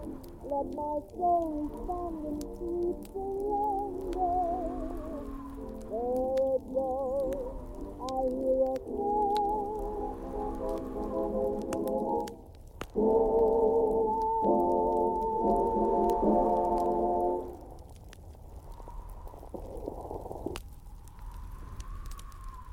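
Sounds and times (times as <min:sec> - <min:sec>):
muffled oldies music playing from another room: 0:00.0 - 0:17.6
fire crackling: 0:00.0 - 0:22.7.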